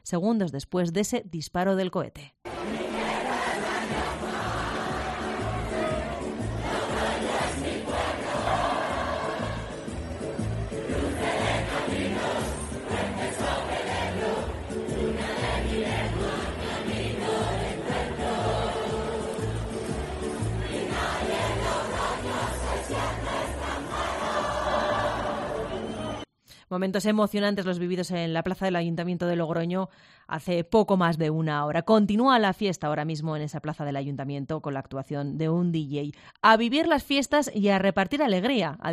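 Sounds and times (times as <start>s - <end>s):
speech: 0.0s - 2.4s, 26.7s - 38.9s
crowd loudly singing a city anthem: 2.5s - 26.2s.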